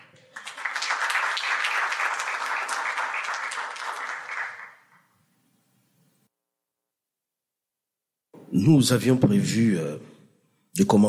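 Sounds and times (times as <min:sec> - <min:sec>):
audience applause: 0:00.0 - 0:05.0
speech: 0:08.6 - 0:10.1, 0:10.8 - 0:11.0.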